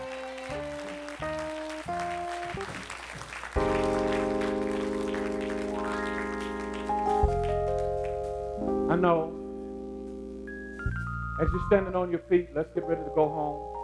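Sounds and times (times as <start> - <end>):
audience clapping: 0.0 - 8.4
speech: 9.0 - 9.4, 11.4 - 13.7.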